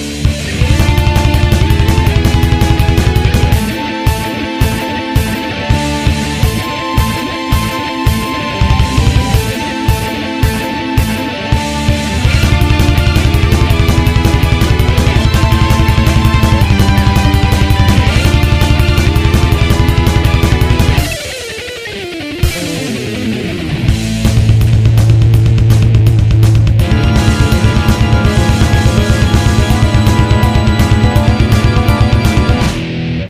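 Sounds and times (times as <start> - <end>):
intro solo: 0.2 - 21.4, 22.5 - 33.2.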